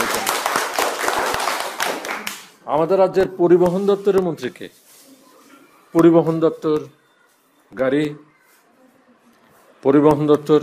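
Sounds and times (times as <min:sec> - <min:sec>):
group applause: 0:00.0 - 0:02.6
speech: 0:02.7 - 0:04.8, 0:05.9 - 0:07.0, 0:07.7 - 0:08.3, 0:09.8 - 0:10.6.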